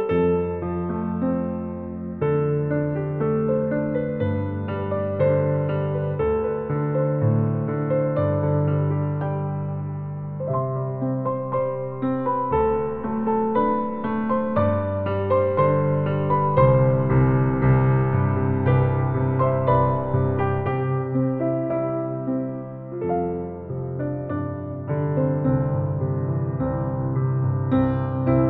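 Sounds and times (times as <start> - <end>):
improvised piano: 0.0 - 28.4.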